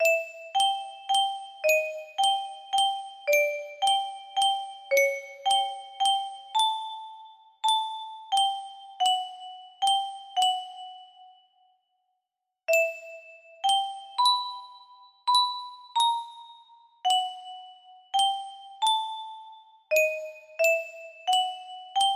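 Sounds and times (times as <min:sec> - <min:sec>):
music box melody: 0:00.0 - 0:11.6, 0:12.7 - 0:22.1.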